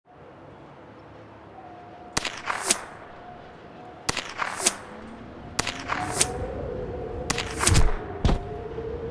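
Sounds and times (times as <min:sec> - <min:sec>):
rocket: 0:02.2 - 0:03.1, 0:04.1 - 0:06.5, 0:07.2 - 0:08.5.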